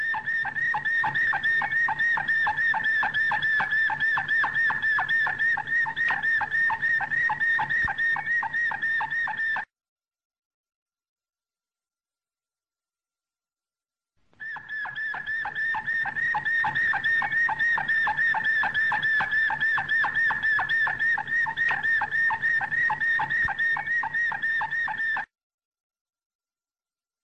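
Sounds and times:
canary whistled song: 0.0 - 9.7, 14.4 - 25.3.

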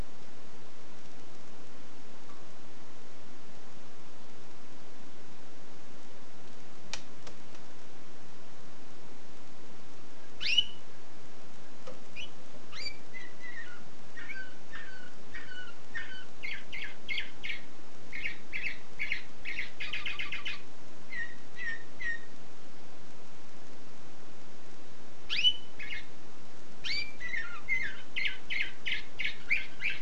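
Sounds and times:
canary singing: 10.4 - 10.9, 12.1 - 22.3, 25.3 - 26.1, 26.8 - 30.0.

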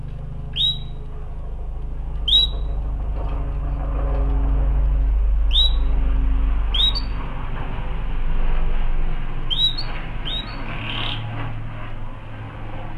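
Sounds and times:
loud low rumble: 0.0 - 12.9
canary call notes: 0.5 - 1.1, 2.2 - 2.8, 5.5 - 6.0, 6.7 - 7.2, 9.5 - 11.3.

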